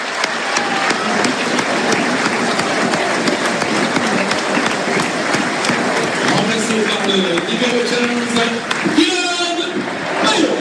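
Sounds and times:
stadium crowd applauding a substituted player: 0.0s - 10.5s.

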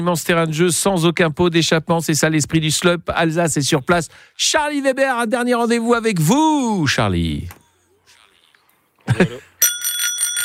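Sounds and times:
speech: 0.0s - 7.6s, 9.1s - 9.4s
bicycle bell ringing: 9.6s - 10.4s.

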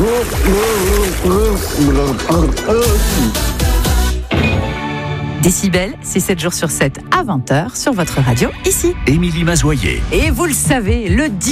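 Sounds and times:
blowing into water underwater: 0.0s - 4.1s
speech: 0.2s - 3.6s, 5.4s - 11.5s.

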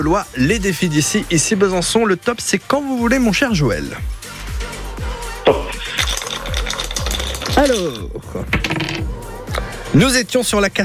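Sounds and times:
speech: 0.0s - 4.2s, 7.6s - 8.9s, 9.9s - 10.8s
dice rolled across a board for a radio board game: 5.9s - 8.0s, 8.6s - 9.0s.

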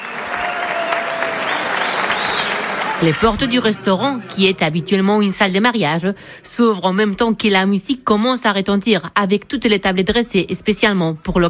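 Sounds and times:
loud applause at a dinner event: 0.0s - 4.8s
speech: 3.0s - 11.4s.

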